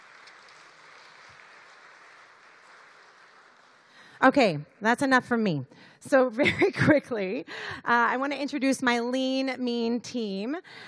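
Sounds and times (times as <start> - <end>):
audience applause: 0.0 - 4.1
speech: 4.2 - 10.8.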